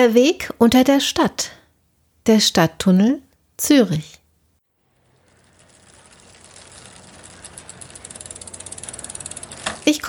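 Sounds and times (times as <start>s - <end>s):
speech: 0.0s - 1.6s, 2.2s - 4.2s
bicycle freewheel clicking: 4.9s - 10.0s.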